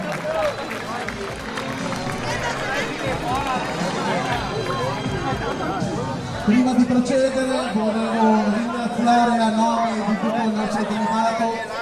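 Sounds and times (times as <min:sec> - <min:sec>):
audience applause: 0:00.0 - 0:06.1
speech: 0:06.5 - 0:11.8.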